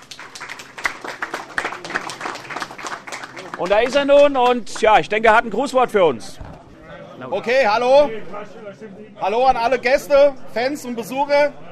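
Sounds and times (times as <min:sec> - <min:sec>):
audience applause: 0:00.0 - 0:04.9
speech: 0:03.6 - 0:06.4, 0:07.2 - 0:11.6.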